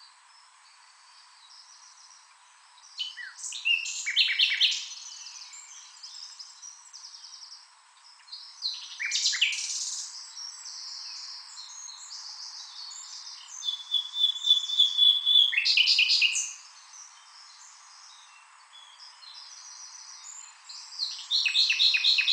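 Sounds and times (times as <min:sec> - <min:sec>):
common nightingale singing: 0:00.0 - 0:22.3.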